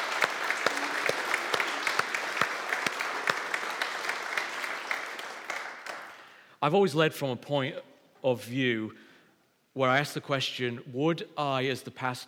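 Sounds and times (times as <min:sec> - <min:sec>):
audience applause: 0:00.0 - 0:06.3
speech: 0:06.6 - 0:09.0, 0:09.8 - 0:12.2.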